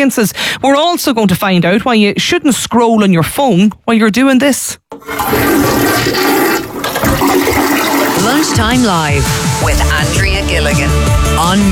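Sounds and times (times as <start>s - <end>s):
speech: 0.0s - 6.3s, 8.4s - 11.7s
toilet flushing: 4.9s - 9.6s.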